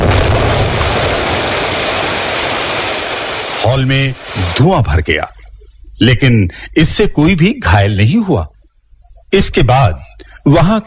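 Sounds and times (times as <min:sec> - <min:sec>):
loud bomb explosion with roaring rumble: 0:00.0 - 0:04.6
speech: 0:03.8 - 0:05.4, 0:06.0 - 0:08.5, 0:09.3 - 0:10.8.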